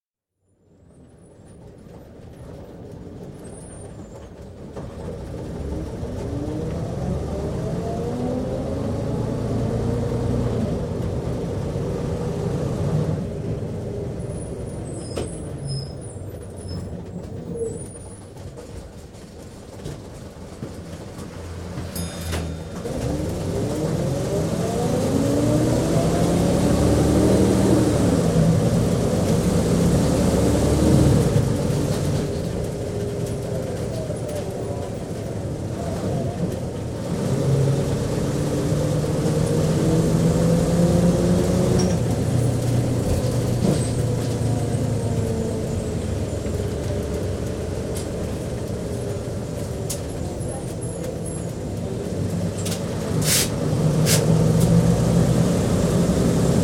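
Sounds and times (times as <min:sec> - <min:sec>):
Routemaster double-decker bus running, lower deck interior: 0:00.4 - 0:56.6
Routemaster bus bell ringing: 0:21.8 - 0:23.7.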